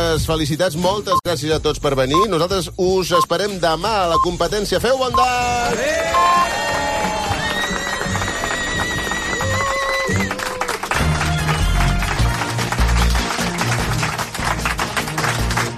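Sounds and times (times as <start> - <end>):
speech: 0.2 - 7.2
loud bright music: 5.0 - 15.7
studio audience cheering and applause: 5.5 - 15.7.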